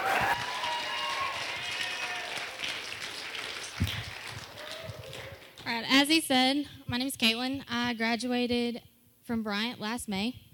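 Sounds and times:
crowd noise: 0.0 - 5.7
audience applause welcoming a speaker at a gathering: 0.0 - 5.8
speech: 6.0 - 10.4.

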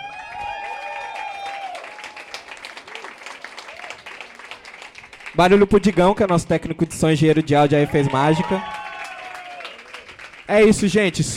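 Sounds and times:
high whoops and cheering voices: 0.0 - 4.3, 7.7 - 10.2
crowd applause: 0.0 - 6.7, 7.7 - 11.3
speech: 5.4 - 8.7, 10.5 - 11.3.

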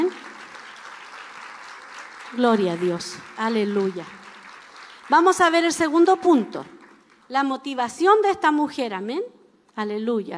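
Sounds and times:
audience applause praising God: 0.0 - 7.2
speech: 2.3 - 4.2, 5.1 - 6.7, 7.3 - 10.3.

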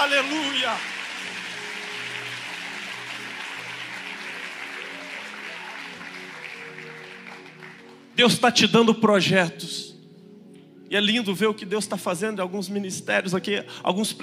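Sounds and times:
audience applause: 0.0 - 8.2
speech: 0.2 - 1.4, 8.2 - 9.8, 10.9 - 14.2.

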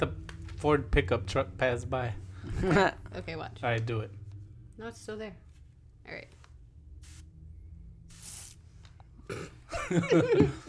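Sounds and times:
speech: 0.0 - 4.2, 4.8 - 5.4, 6.1 - 6.4, 9.3 - 10.6
Febreze aerosol air freshener can spraying: 7.0 - 7.3, 8.1 - 8.7.

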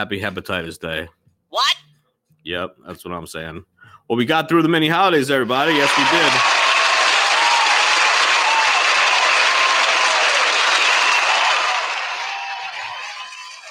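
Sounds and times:
speech: 0.0 - 1.7, 2.4 - 6.6
live audience applause: 5.6 - 13.6.

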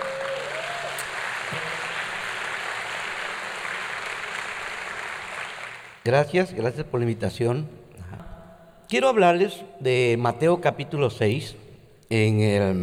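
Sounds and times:
audience applause: 0.0 - 6.0
speech: 6.1 - 8.3, 8.9 - 12.8.

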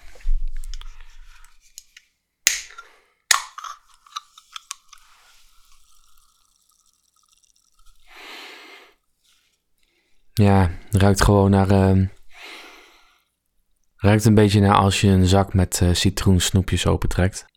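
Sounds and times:
drink cans opening: 1.7 - 8.1
speech: 10.4 - 12.2, 14.0 - 17.5.

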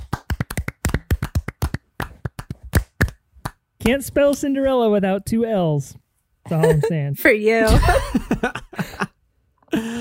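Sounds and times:
hosts clapping hands: 0.0 - 4.4
speech: 3.9 - 9.0.

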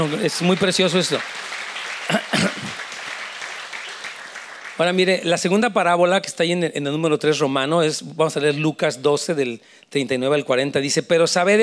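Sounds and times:
speech: 0.0 - 1.5, 4.8 - 11.6
crowd applauding: 0.0 - 5.3.

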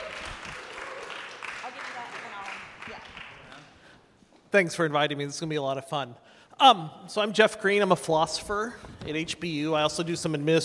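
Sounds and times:
audience applause: 0.0 - 3.8
speech: 4.5 - 10.6.

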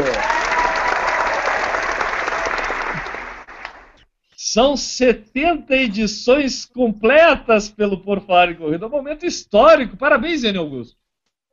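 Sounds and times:
audience applause: 0.0 - 4.0
speech: 4.5 - 11.0.

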